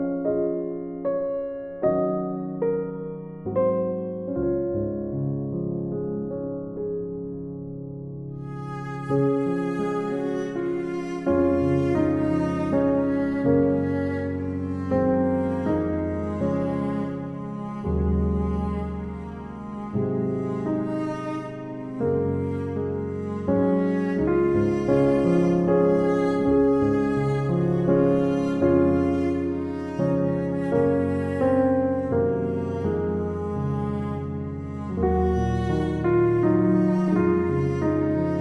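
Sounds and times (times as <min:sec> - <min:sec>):
cello playing instrumental Christmas music: 0:00.0 - 0:38.3
piano playing instrumental Christmas music: 0:00.0 - 0:38.3.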